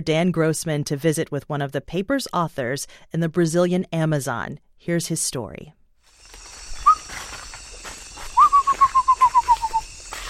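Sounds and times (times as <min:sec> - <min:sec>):
speech: 0:00.0 - 0:05.8
bird singing in the Amazon jungle: 0:06.2 - 0:10.2.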